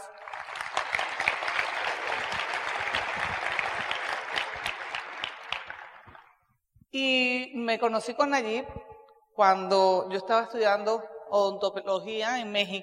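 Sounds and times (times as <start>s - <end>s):
applause: 0.0s - 6.4s
speech: 7.0s - 8.8s, 9.4s - 12.8s.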